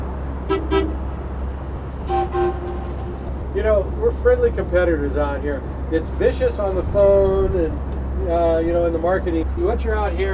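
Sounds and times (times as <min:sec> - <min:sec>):
low boat engine rumble: 0:00.0 - 0:10.3
boat horn toots: 0:00.4 - 0:01.1, 0:02.0 - 0:03.3
speech: 0:03.6 - 0:10.3.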